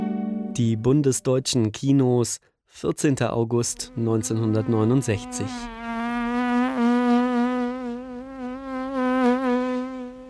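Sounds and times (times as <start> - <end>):
speech: 0.6 - 5.8
housefly buzzing: 3.9 - 10.2.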